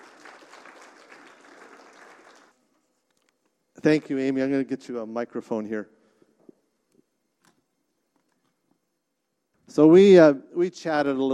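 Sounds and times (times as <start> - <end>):
audience applauding to welcome a guest onto the platform: 0.0 - 2.6
speech: 3.8 - 6.0, 9.8 - 11.3.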